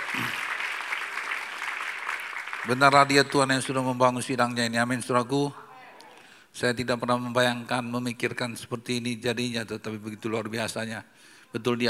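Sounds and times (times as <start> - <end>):
audience applauding: 0.0 - 4.0
speech: 2.6 - 5.6, 6.6 - 11.8.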